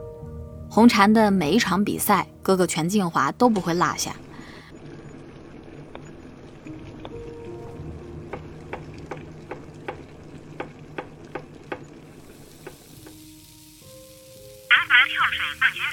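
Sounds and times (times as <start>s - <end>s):
speech: 0.7s - 4.3s
stir-frying food in a wok: 9.5s - 14.7s.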